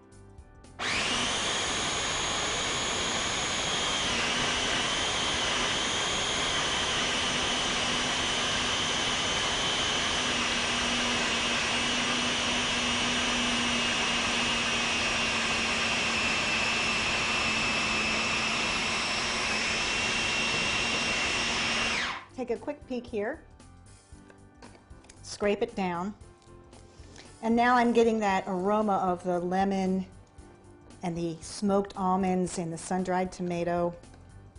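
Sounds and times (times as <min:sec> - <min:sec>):
food processor motor whirring: 0:00.8 - 0:22.3
speech: 0:22.5 - 0:23.5, 0:25.4 - 0:26.3, 0:27.4 - 0:30.1, 0:31.0 - 0:34.1.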